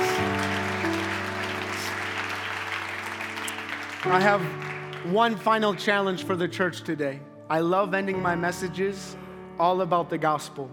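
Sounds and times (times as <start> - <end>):
church audience applause: 0.0 - 5.8
speech: 4.0 - 10.7.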